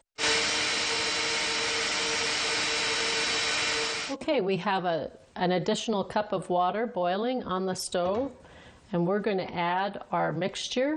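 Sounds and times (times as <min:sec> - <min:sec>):
blender motor whirring: 0:00.2 - 0:04.2
speech: 0:04.1 - 0:10.9.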